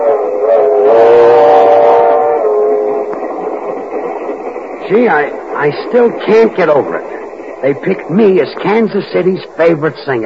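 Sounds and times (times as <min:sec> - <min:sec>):
multi-toned train whistle: 0:00.0 - 0:03.8
moving train rumbling: 0:00.0 - 0:10.2
speech: 0:04.9 - 0:10.2.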